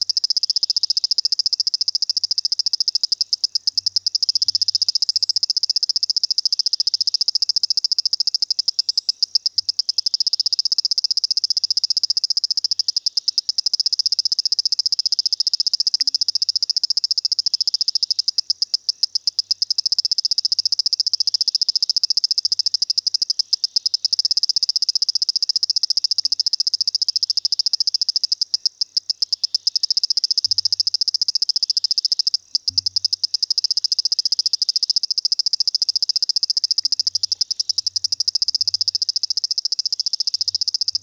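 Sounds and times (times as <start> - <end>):
dwarf swamp frog clicking call: 0.0 - 41.0.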